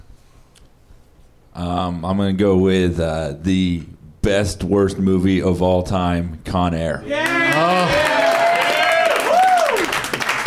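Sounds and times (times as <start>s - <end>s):
speech: 1.6s - 8.0s
person whooping: 7.0s - 10.0s
audience at a live comedy recording clapping and cheering: 7.1s - 10.4s.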